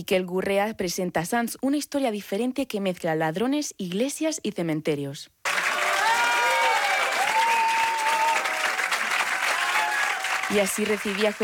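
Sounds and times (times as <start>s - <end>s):
speech: 0.0s - 5.4s, 10.5s - 11.4s
warm farewell ovation from the Academia de Cine: 5.4s - 11.4s.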